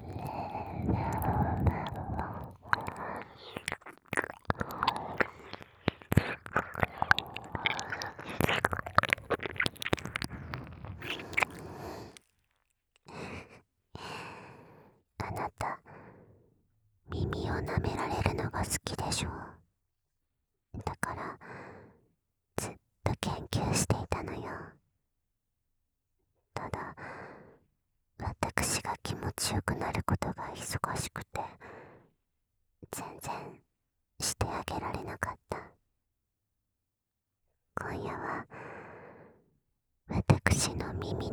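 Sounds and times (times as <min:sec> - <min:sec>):
ASMR whispering: 0:00.0 - 0:12.2, 0:15.2 - 0:15.8, 0:17.1 - 0:19.5, 0:20.8 - 0:21.4, 0:22.6 - 0:24.6, 0:26.6 - 0:27.0, 0:28.2 - 0:31.6, 0:34.2 - 0:35.7, 0:37.8 - 0:38.5, 0:40.1 - 0:41.3
ASMR ear licking: 0:00.0 - 0:12.3.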